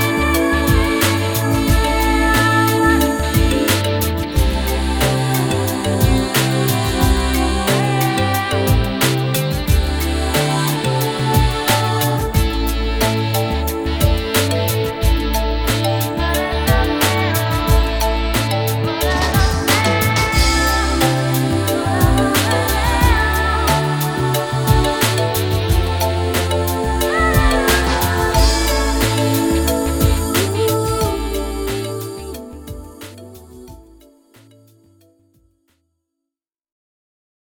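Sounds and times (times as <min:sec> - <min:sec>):
pop track vocals: 0:00.0 - 0:35.2.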